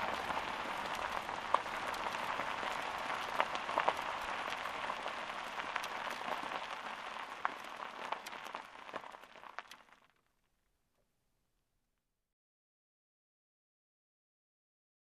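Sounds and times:
car driving on dirt road with open window: 0.0s - 9.3s.

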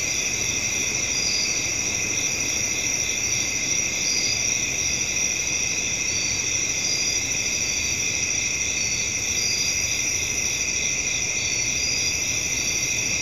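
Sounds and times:
crickets trilling at night: 0.0s - 13.2s.

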